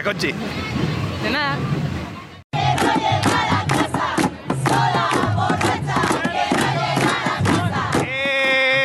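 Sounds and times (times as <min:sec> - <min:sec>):
speech: 0:00.0 - 0:01.9
crowd chanting and shouting at a street demonstration: 0:02.5 - 0:08.1.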